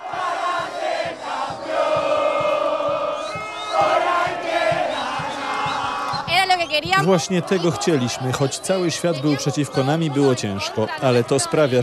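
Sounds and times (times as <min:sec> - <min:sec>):
rhythmic thumping: 0:00.0 - 0:08.0
football fans cheering in the fan zone outside the stadium in Atlanta: 0:00.0 - 0:11.8
speech: 0:06.7 - 0:11.8.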